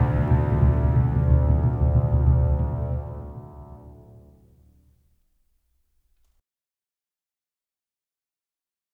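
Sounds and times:
mountain battle music: 0.0 - 4.4.

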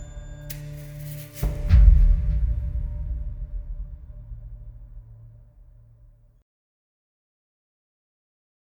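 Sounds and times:
intro music: 0.0 - 6.2.

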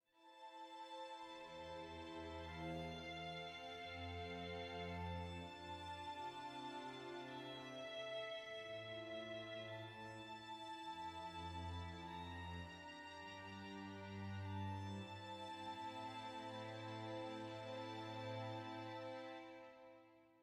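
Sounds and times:
soft adventure music: 0.2 - 20.4.

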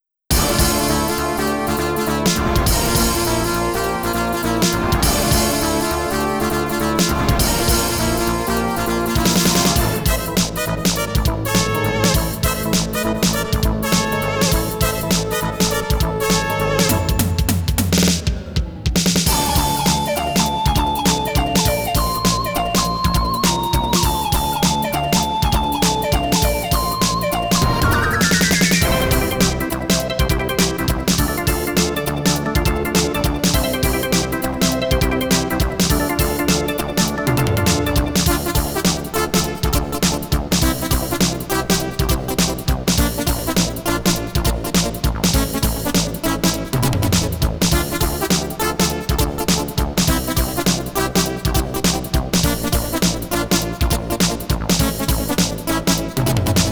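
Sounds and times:
MIDI music on a Roland CM-64: 0.3 - 56.7.

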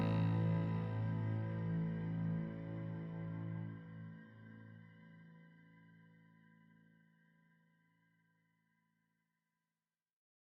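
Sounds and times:
tense music loop: 0.0 - 2.7.

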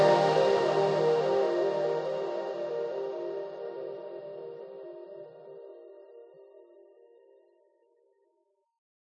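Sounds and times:
grasslands music stem: 0.0 - 3.8.

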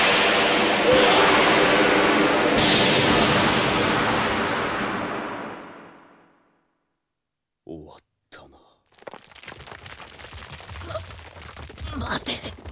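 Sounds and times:
magic lightning strike explosion: 0.0 - 6.4.

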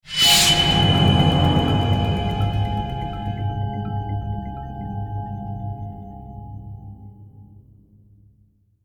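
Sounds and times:
success stinger: 0.1 - 5.5.

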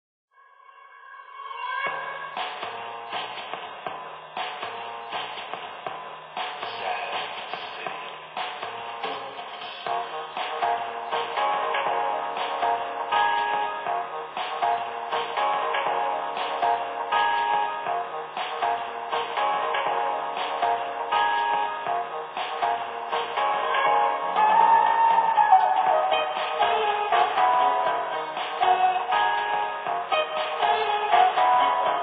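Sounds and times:
ambient music: 1.9 - 32.0.

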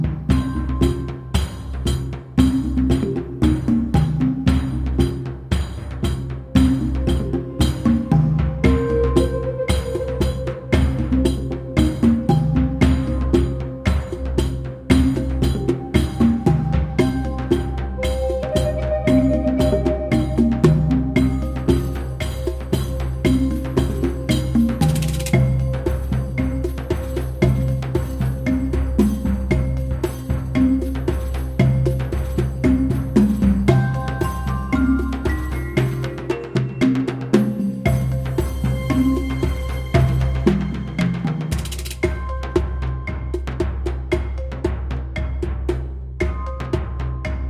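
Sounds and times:
upbeat music: 0.1 - 47.4.

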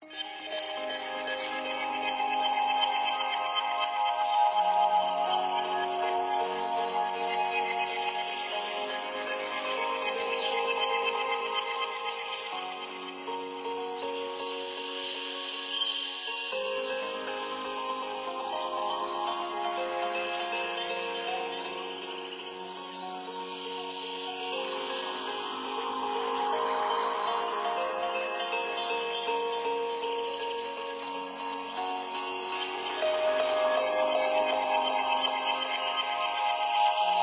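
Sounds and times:
ambient music: 0.0 - 37.2.

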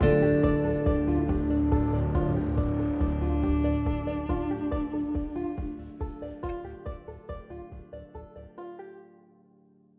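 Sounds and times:
exploration travelling music stop in five-four time: 0.0 - 8.2.

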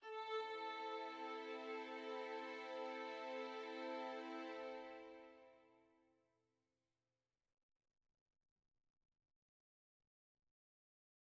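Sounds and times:
dark soft music: 0.0 - 5.6.

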